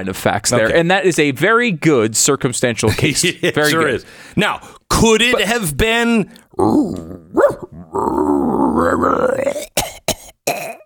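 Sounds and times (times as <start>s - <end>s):
speech: 0.0s - 9.8s
person imitating a raccoon dog: 6.6s - 10.0s.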